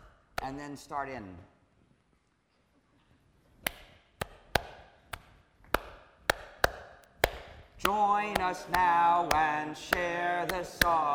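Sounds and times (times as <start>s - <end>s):
speech: 0.5s - 1.6s, 7.8s - 11.1s
hand claps in a count-in pattern: 3.6s - 11.1s.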